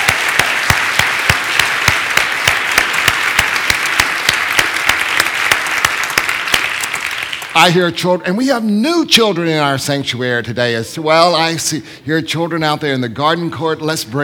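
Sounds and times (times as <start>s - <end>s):
audience applauding: 0.0s - 7.8s
speech: 7.6s - 14.2s.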